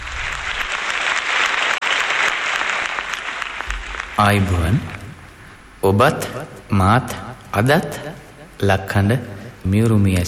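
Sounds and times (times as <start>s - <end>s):
audience applause welcoming a veteran singer to the stage: 0.0s - 5.4s
speech: 4.2s - 5.0s, 5.8s - 10.2s.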